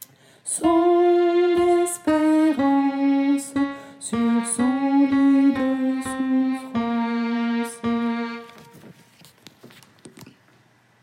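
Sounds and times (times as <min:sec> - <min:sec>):
soprano singing: 0:00.5 - 0:08.8.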